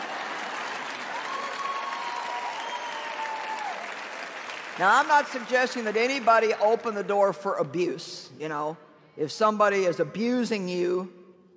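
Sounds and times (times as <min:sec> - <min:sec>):
audience applause: 0:00.0 - 0:06.7
speech: 0:04.8 - 0:11.2.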